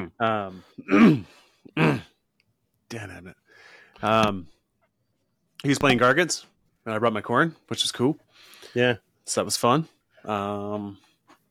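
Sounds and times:
speech: 0.1s - 2.1s, 2.9s - 4.6s, 5.6s - 11.0s
rough voiced throat clearing into microphone: 0.8s - 2.2s.

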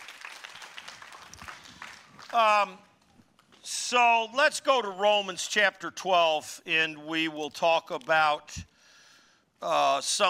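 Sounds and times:
audience applause: 0.0s - 2.6s
speech: 2.3s - 2.9s, 3.6s - 8.7s, 9.6s - 10.2s.

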